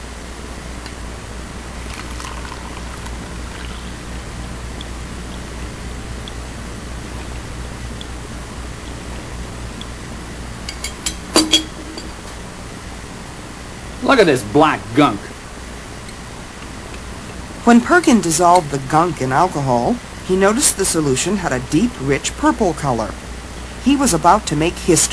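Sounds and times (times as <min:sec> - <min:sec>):
liquid trickling through filter paper: 0:01.8 - 0:03.9
glass clinking: 0:10.7 - 0:12.2
speech: 0:14.2 - 0:15.3, 0:17.6 - 0:23.2, 0:23.8 - 0:25.1.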